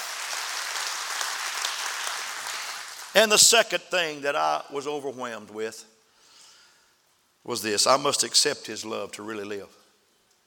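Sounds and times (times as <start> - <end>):
audience clapping: 0.0 - 3.6
speech: 3.2 - 5.9, 7.4 - 9.8.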